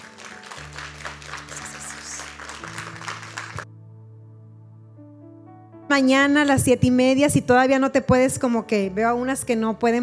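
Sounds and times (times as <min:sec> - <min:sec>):
audience applause: 0:00.0 - 0:03.6
speech: 0:05.9 - 0:10.0.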